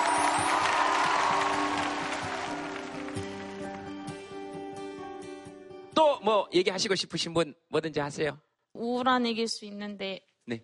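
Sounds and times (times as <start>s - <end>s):
audience applause: 0.0s - 4.2s
speech: 6.2s - 10.6s.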